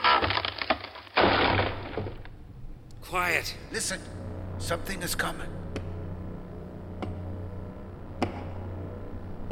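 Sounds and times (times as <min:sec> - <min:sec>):
wooden boxes being forced open: 0:00.0 - 0:02.3
speech: 0:03.1 - 0:05.6.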